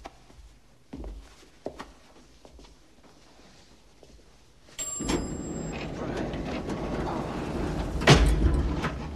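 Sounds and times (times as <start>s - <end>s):
lift door forced open: 4.9s - 9.1s.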